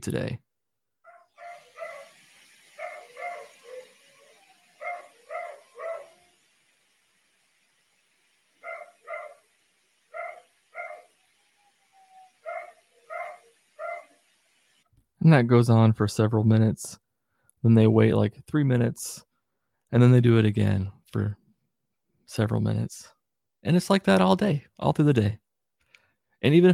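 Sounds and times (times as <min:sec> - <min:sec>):
speech: 0:00.0 - 0:00.4, 0:15.2 - 0:17.0, 0:17.6 - 0:19.3, 0:19.9 - 0:21.4, 0:22.3 - 0:25.4, 0:26.4 - 0:26.7
dog barking: 0:01.1 - 0:02.2, 0:02.8 - 0:04.0, 0:04.8 - 0:06.2, 0:08.6 - 0:09.4, 0:10.1 - 0:11.1, 0:12.4 - 0:14.1.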